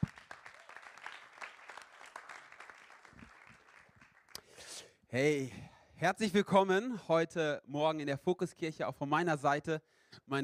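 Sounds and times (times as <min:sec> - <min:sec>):
audience applause for the worship team: 0:00.0 - 0:04.4
speech: 0:05.1 - 0:10.4.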